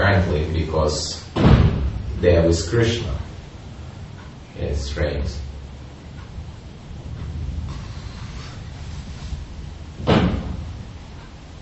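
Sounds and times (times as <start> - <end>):
speech: 0.0 - 3.3, 4.6 - 5.4
steady low rumble: 0.0 - 11.5
softer knocks: 1.3 - 2.1, 7.0 - 11.3
window slamming shut in a neighbouring building: 1.3 - 2.2, 10.0 - 10.9.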